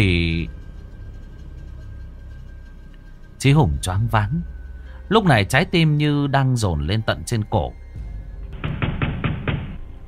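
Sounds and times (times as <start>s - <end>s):
speech: 3.4s - 7.8s
pounding on a door: 8.5s - 9.8s.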